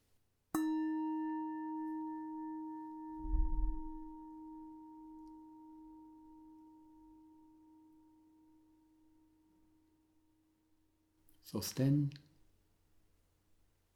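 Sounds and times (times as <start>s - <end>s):
bell tone: 0.6s - 7.8s
speech: 11.5s - 12.3s.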